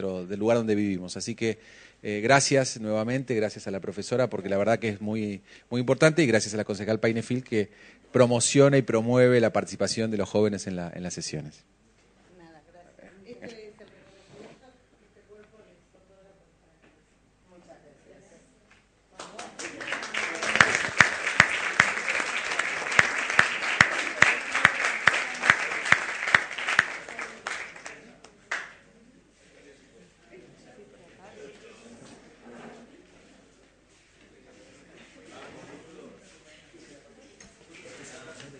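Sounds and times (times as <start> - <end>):
speech: 0.0 - 11.8
audience applause: 19.2 - 28.8.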